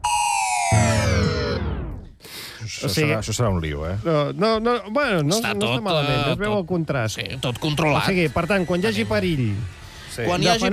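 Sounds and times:
joke Res Alert warning tone radio sound effect: 0:00.0 - 0:02.1
speech: 0:02.7 - 0:10.7.

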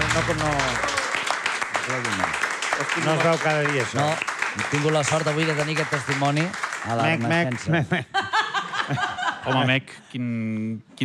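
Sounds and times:
audience applause: 0:00.0 - 0:07.8
speech: 0:00.2 - 0:01.0, 0:01.9 - 0:08.2, 0:08.9 - 0:11.0
laughter: 0:07.6 - 0:09.8.

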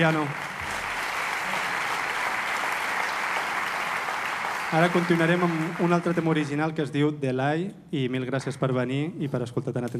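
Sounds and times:
speech: 0:00.0 - 0:00.5, 0:04.7 - 0:09.9
audience applause for musician: 0:00.0 - 0:06.8.

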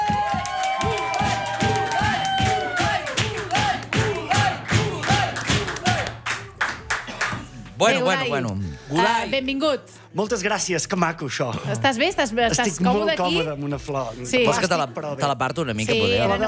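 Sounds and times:
audience applause: 0:00.0 - 0:07.5
speech: 0:07.8 - 0:16.4.

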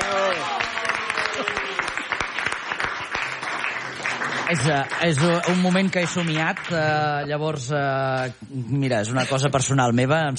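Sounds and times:
audience applause: 0:00.0 - 0:07.3
speech: 0:04.5 - 0:10.3.

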